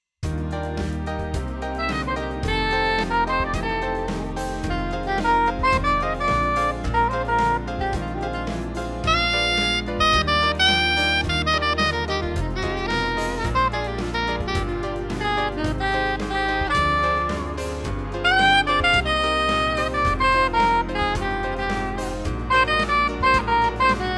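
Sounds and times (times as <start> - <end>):
jazzy ambient music: 0.2 - 24.1.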